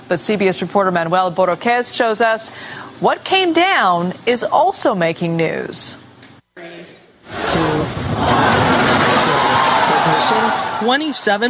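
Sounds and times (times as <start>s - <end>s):
speech: 0.1s - 6.0s, 10.8s - 11.4s
crowd cheering at Falcon Heavy rocket launch: 6.6s - 11.4s
crowd applauding at rocket launch: 7.3s - 11.4s.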